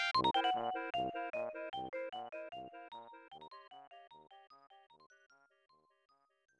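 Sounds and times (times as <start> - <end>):
maze game level music: 0.2 - 3.2.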